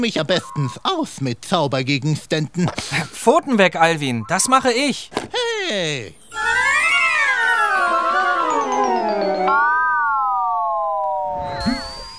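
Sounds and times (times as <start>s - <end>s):
speech: 0.0s - 6.2s
high-pitched wavering squeal ending in a rough sputter: 6.0s - 12.1s.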